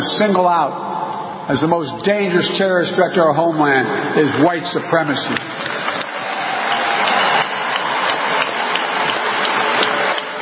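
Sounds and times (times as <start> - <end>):
speech: 0.0 - 0.9, 1.5 - 5.8
crowd applauding: 4.2 - 10.4.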